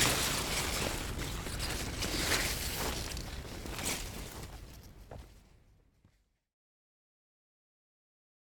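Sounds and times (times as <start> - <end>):
nozawana greens being harvested: 0.0 - 4.8.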